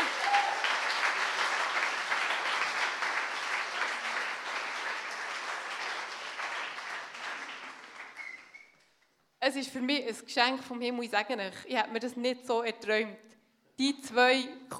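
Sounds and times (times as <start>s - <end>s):
audience applause: 0.0s - 8.8s
speech: 9.5s - 14.7s.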